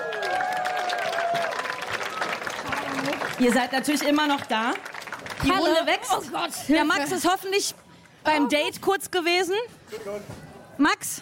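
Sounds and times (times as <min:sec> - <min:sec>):
audience whooping and cheering: 0:00.0 - 0:03.4
audience applause: 0:00.0 - 0:06.2
speech: 0:03.4 - 0:11.1.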